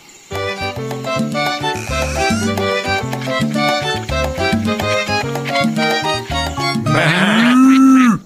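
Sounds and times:
bouncy rhythmic tune in a children's cartoon: 0.3 - 7.2
many farm animals calling in a barn: 1.4 - 8.2
cow mooing: 6.9 - 8.2.

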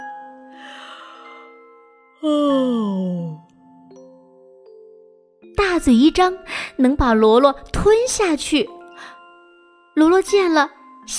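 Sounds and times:
speech: 2.2 - 3.0, 5.8 - 8.8, 10.0 - 11.1
big drawn-out yawn: 2.2 - 3.5.

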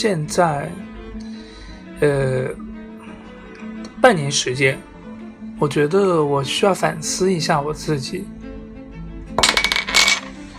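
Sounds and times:
speech: 0.0 - 0.9, 2.0 - 2.7, 4.0 - 4.9, 5.6 - 8.4
pen being spun and clattering: 9.4 - 10.5.

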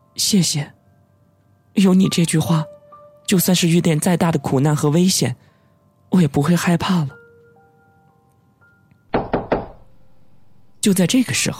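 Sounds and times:
speech: 0.2 - 0.8, 1.8 - 5.5, 6.1 - 7.2, 10.8 - 11.5
knocking on a door: 9.1 - 10.0.

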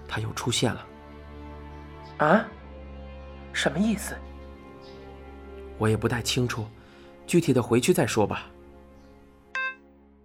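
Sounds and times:
speech: 0.2 - 0.9, 2.2 - 2.6, 3.6 - 4.3, 5.8 - 8.5
telephone hang-up tone: 9.6 - 9.8.

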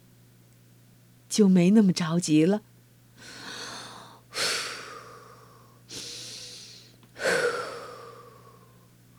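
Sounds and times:
speech: 1.3 - 3.4
child breathing slowly and deeply following a father's lead: 3.2 - 9.0.

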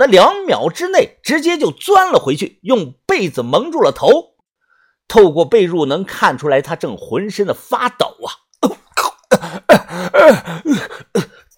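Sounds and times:
speech: 0.0 - 4.3, 5.1 - 8.8, 9.5 - 11.2
repeated coughing: 8.6 - 11.5.

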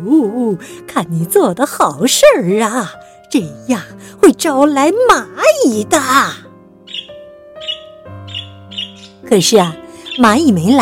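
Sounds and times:
speech: 0.0 - 6.4, 9.3 - 10.8
small bird chirping: 6.8 - 10.8.

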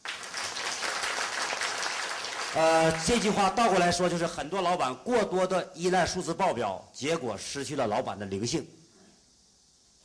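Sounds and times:
audience applause: 0.0 - 3.4
speech: 2.5 - 8.8.

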